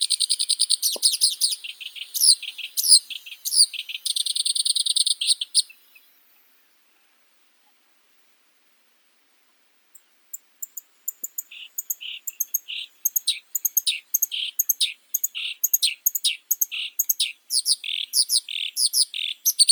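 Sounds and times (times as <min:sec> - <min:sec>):
black-browed reed warbler Acrocephalus bistrigiceps singing: 0:00.0 - 0:06.1, 0:10.0 - 0:19.6.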